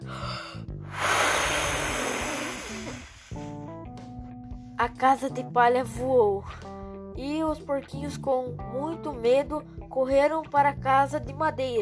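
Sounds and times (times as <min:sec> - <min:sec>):
voice imitating a wolf blowing hard: 0:00.9 - 0:03.6
speech: 0:04.8 - 0:11.8.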